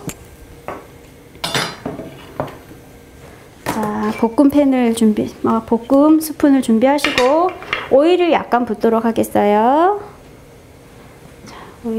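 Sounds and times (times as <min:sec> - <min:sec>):
bowls clinking as taken out in a kitchen: 0:01.4 - 0:02.6, 0:07.0 - 0:08.0
speech: 0:04.2 - 0:10.0.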